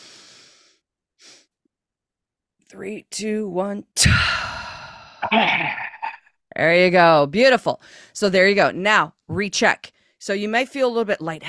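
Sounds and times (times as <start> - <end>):
person breathing in during a breathing exercise: 0.0 - 1.5, 4.1 - 6.2
speech: 2.7 - 4.5, 5.3 - 5.8, 6.6 - 11.4.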